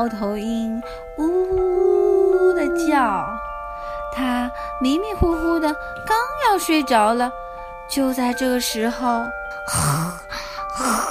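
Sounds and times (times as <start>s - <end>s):
speech: 0.0s - 1.8s, 2.6s - 3.3s, 4.1s - 10.2s, 10.8s - 11.0s
person imitating snoring: 9.7s - 11.0s.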